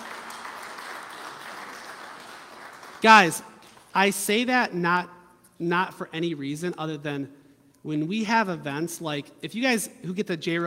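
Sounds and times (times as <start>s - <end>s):
audience applause: 0.0s - 3.3s
speech: 3.0s - 10.6s.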